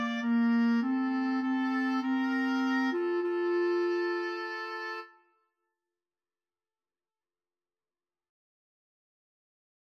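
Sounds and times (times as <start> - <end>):
woodwind trio of flute oboe and clarinet: 0.0 - 5.3.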